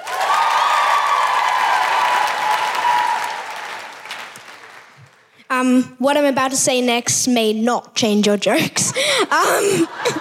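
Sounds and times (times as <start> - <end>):
crowd cheering: 0.0 - 5.2
audience applause: 0.0 - 5.3
speech: 5.6 - 10.2
laughter: 8.9 - 10.2.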